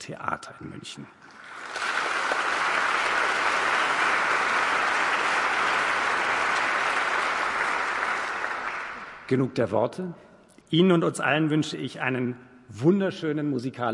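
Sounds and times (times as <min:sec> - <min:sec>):
speech: 0:00.0 - 0:01.5, 0:09.3 - 0:13.9
audience applause: 0:01.3 - 0:09.3.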